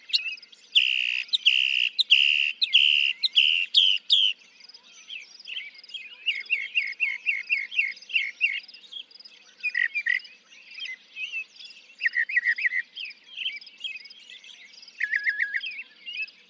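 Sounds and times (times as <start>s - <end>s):
Northern mockingbird singing: 0.0s - 16.4s.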